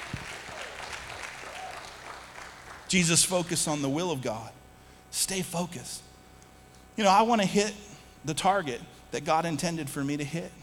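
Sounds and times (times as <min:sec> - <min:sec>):
audience applause: 0:00.0 - 0:02.9
speech: 0:02.9 - 0:06.1, 0:07.0 - 0:10.6.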